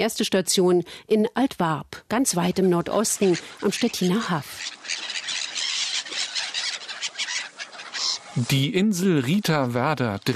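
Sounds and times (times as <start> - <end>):
speech: 0.0 - 5.1, 8.4 - 10.3
black-headed gulls and terns calling: 2.4 - 10.3.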